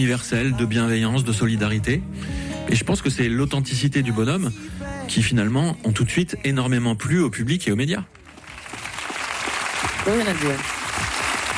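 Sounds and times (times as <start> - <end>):
speech: 0.0 - 8.2, 10.0 - 10.8
applause: 8.1 - 11.5.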